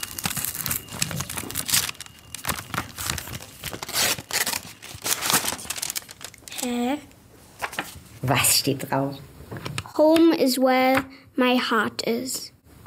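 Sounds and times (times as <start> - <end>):
golden envelope being opened, crinkling and tearing: 0.0 - 6.8, 7.6 - 8.0
speech: 8.3 - 9.3, 10.0 - 12.5.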